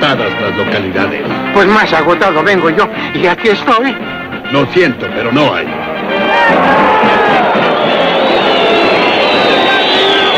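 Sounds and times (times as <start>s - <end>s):
speech: 0.0s - 5.8s
packed football stadium crowd roaring and cheering: 5.8s - 10.3s.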